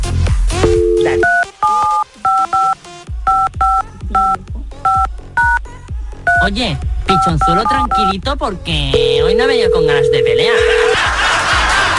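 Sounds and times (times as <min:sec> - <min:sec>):
telephone keypad dialing tones: 0:00.6 - 0:05.6, 0:07.1 - 0:08.1, 0:09.0 - 0:11.0
speech: 0:06.5 - 0:11.4
laughter: 0:10.4 - 0:11.9.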